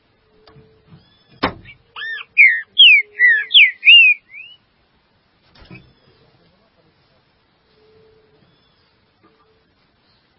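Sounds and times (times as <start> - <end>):
green-winged saltator whistled phrase: 2.0 - 4.6.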